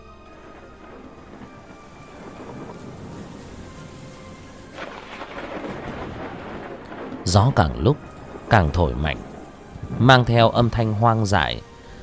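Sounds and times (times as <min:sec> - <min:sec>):
rain: 0:00.0 - 0:12.0
thunder rumbling: 0:00.0 - 0:12.0
speech: 0:07.3 - 0:09.3, 0:10.0 - 0:11.7.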